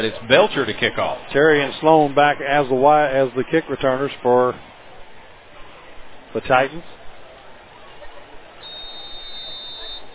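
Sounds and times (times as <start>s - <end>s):
speech: 0.0s - 4.7s, 6.3s - 7.0s
referee's whistle: 8.6s - 10.1s.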